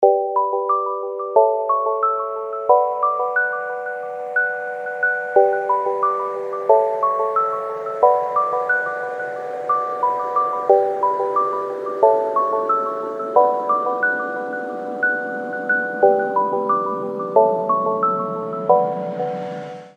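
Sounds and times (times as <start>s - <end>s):
loud lullaby melody: 0.0s - 19.9s.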